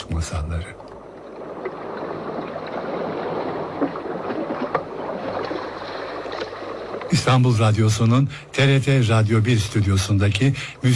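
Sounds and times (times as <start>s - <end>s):
speech: 0.2s - 0.9s, 7.2s - 10.9s
waves lapping on a beach: 0.9s - 8.0s.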